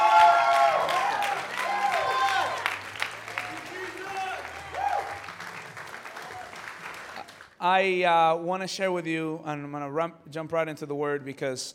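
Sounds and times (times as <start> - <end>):
church congregation applauding in praise of Jesus: 0.0 - 7.6
speech: 7.6 - 11.7.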